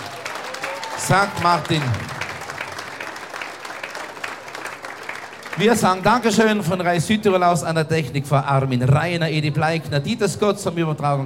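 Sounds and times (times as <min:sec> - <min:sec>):
crowd applauding: 0:00.0 - 0:07.4
speech: 0:01.1 - 0:02.2, 0:05.6 - 0:11.2.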